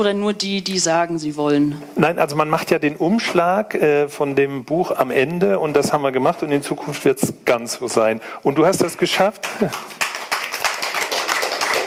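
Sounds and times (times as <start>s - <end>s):
speech: 0.0s - 10.1s
hesitant audience clapping: 9.2s - 11.8s.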